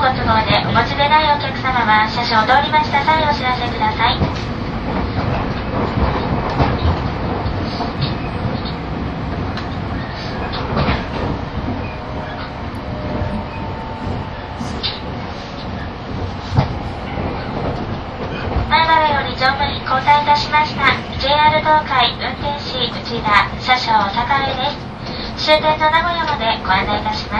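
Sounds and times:
683 series limited express train running: 0.0s - 27.3s
speech: 0.3s - 4.4s, 20.4s - 27.3s.

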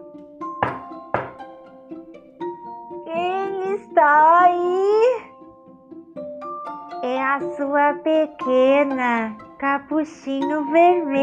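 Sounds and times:
heavy hollow knocks on a door: 0.6s - 1.5s
soft steady musical tone: 2.4s - 11.2s
speech: 4.0s - 5.0s, 7.3s - 11.2s.

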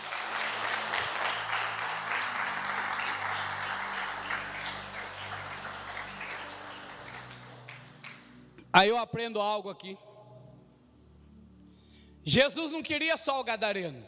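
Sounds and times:
large audience applause: 0.0s - 8.3s
speech: 8.8s - 10.1s, 12.2s - 14.0s.

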